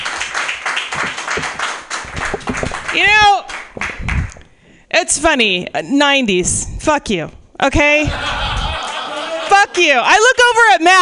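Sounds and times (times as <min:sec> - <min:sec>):
comedy club audience clapping for a comedian: 0:00.0 - 0:04.4, 0:08.4 - 0:09.8
speech: 0:05.0 - 0:08.4, 0:09.5 - 0:11.0
laughter: 0:08.0 - 0:10.0.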